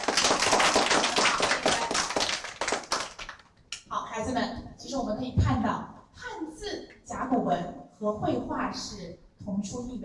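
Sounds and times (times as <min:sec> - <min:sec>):
crowd applause: 0:00.0 - 0:03.5
speech: 0:04.2 - 0:05.9, 0:07.3 - 0:10.0.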